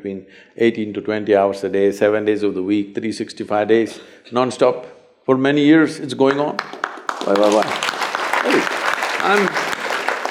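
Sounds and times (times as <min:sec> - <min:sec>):
speech: 0:00.0 - 0:09.6
audience applause: 0:06.6 - 0:10.2.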